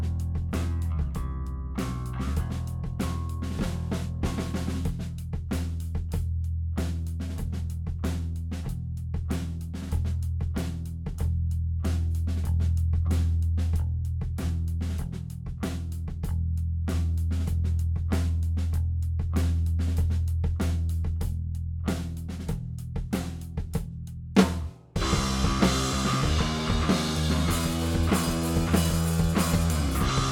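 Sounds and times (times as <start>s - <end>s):
bass: 0.0s - 30.3s
drums: 0.0s - 30.3s.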